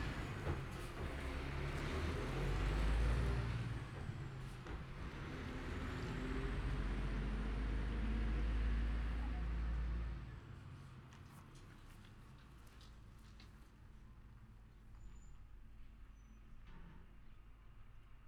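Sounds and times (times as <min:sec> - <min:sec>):
garbage truck on waste collection: 0:00.0 - 0:10.7.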